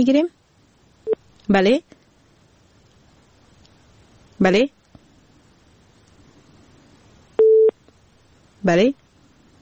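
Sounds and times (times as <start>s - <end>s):
speech: 0.0s - 0.4s, 1.0s - 2.0s, 4.4s - 4.8s, 8.6s - 9.0s
telephone busy tone after a dropped call: 7.4s - 7.7s.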